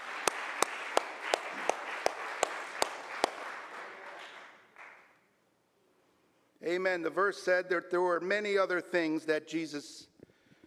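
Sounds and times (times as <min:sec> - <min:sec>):
audience clapping hands: 0:00.0 - 0:05.3
speech: 0:06.7 - 0:10.1.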